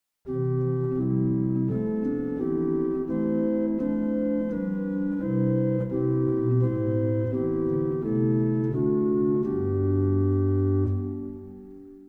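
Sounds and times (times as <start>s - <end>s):
flute: 0.3s - 11.7s.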